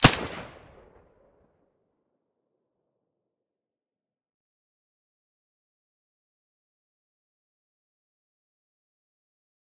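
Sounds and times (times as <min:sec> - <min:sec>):
suppressed gunshot: 0:00.0 - 0:00.8.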